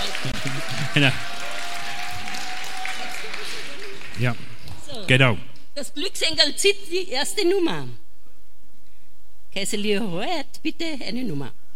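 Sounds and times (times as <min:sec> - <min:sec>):
audience applause: 0:00.0 - 0:05.4
speech: 0:00.4 - 0:01.4, 0:04.2 - 0:04.5, 0:05.1 - 0:08.0, 0:09.5 - 0:11.6.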